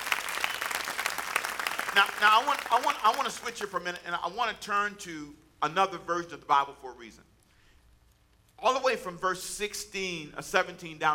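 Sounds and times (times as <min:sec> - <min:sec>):
audience applauding, hand clapping: 0:00.0 - 0:03.9
speech: 0:02.0 - 0:07.3, 0:08.6 - 0:11.1.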